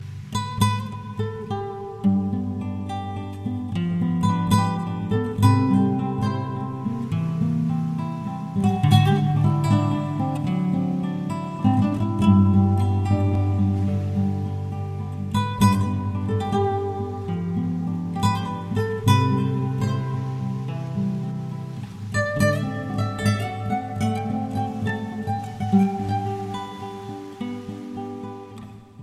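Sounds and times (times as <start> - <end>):
guitar: 0.0 - 29.0.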